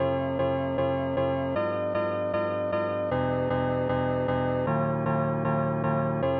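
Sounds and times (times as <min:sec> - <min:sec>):
piano: 0:00.0 - 0:06.3.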